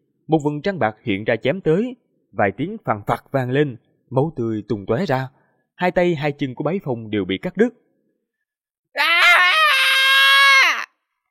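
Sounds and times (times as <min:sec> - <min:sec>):
speech: 0:00.3 - 0:07.8
man screaming wildly in agony: 0:08.9 - 0:11.0.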